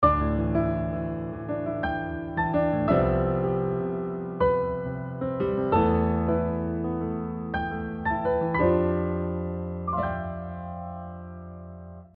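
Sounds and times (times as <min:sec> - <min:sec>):
pandiatonic music: 0:00.0 - 0:12.1.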